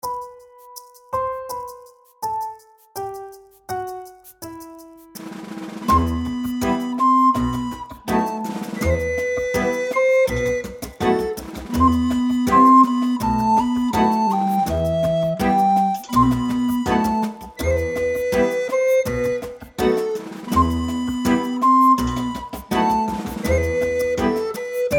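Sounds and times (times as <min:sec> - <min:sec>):
flute tones: 0:05.8 - 0:24.9.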